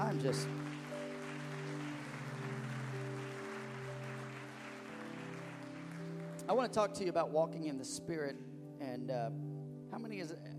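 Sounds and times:
crowd clapping: 0.0 - 7.0
organ-like chords: 0.0 - 7.1
speech: 0.1 - 0.7, 6.5 - 10.5.

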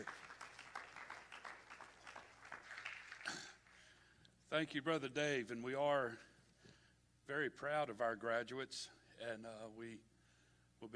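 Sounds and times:
speech: 0.0 - 0.2, 4.5 - 6.3, 7.3 - 10.1, 10.8 - 10.9
audience clapping hands: 0.0 - 4.0.

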